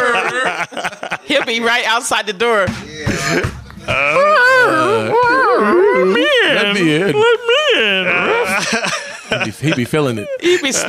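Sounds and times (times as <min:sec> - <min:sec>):
laughter: 0:00.0 - 0:02.0, 0:03.1 - 0:10.8
speech: 0:00.6 - 0:05.2, 0:06.6 - 0:10.8
person imitating dog whining: 0:03.1 - 0:08.6.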